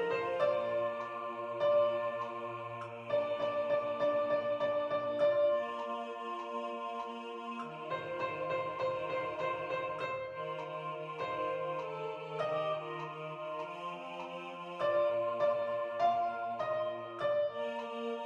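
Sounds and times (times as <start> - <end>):
piano: 0.0 - 18.2
soprano singing: 0.0 - 18.2.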